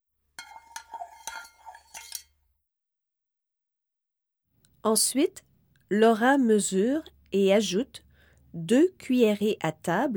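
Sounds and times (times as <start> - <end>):
whisk clinking and scraping a green bowl whisking egg and milk: 0.4 - 2.2
speech: 4.8 - 10.1.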